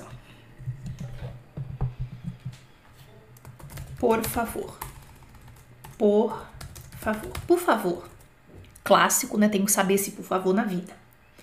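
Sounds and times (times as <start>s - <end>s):
low steady hum: 0.0s - 11.4s
typing on a computer keyboard into a notepad: 3.4s - 8.3s
speech: 4.0s - 4.8s, 6.0s - 8.1s, 8.9s - 11.0s.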